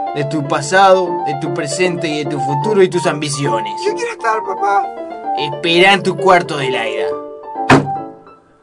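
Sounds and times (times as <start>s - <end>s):
speech: 0.2s - 7.2s
door slamming shut: 7.6s - 8.1s.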